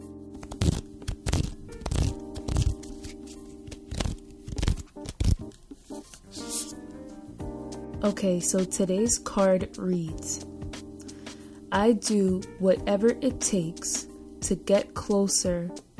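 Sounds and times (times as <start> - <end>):
cards rustling as one is pulled from an affirmations card deck: 0.4 - 6.9
speech: 8.0 - 10.5, 11.7 - 15.8.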